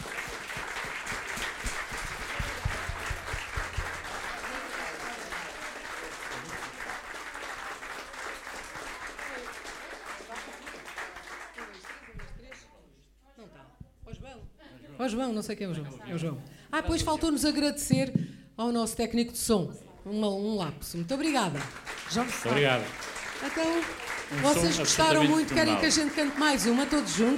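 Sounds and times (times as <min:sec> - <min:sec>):
applause: 0:00.0 - 0:12.7, 0:21.1 - 0:27.3
speech: 0:15.0 - 0:27.3.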